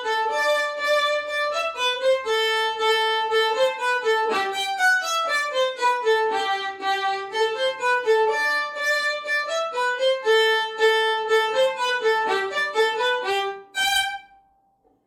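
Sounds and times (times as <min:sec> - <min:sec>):
beginner violin solo: 0:00.0 - 0:14.5.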